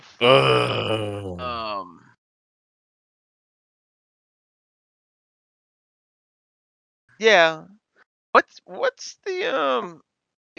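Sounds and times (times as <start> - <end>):
speech: 0.2 - 1.6, 7.2 - 7.7, 8.4 - 10.5
person groaning: 0.2 - 1.9.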